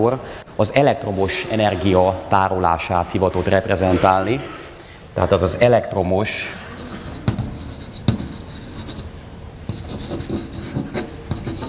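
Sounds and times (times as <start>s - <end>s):
speech: 0.0s - 4.6s, 5.2s - 6.6s
pen writing notes on paper: 6.6s - 11.6s.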